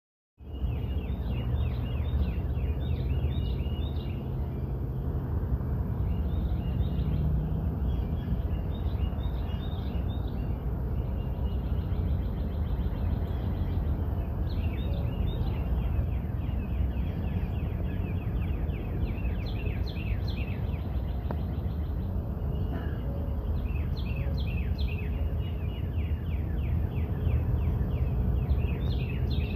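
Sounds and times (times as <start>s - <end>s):
birds chirping: 0.4s - 29.5s.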